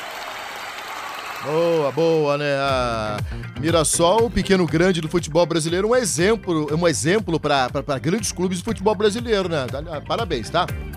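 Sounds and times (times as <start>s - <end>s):
applause: 0.0s - 3.2s
speech: 1.4s - 10.9s.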